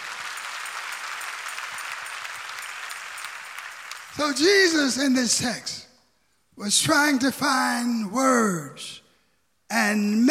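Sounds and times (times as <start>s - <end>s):
audience clapping hands: 0.0s - 4.9s
speech: 4.2s - 5.9s, 6.6s - 9.0s, 9.7s - 10.3s.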